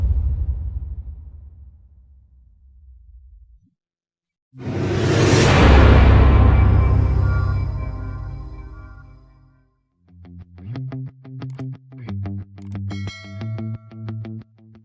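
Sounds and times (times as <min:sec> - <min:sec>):
booms: 0:00.0 - 0:03.6, 0:04.6 - 0:09.2.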